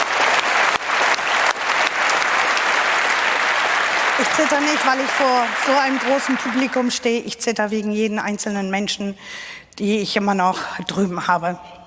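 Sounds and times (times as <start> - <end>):
applause: 0.0 - 7.2
speech: 4.2 - 11.8.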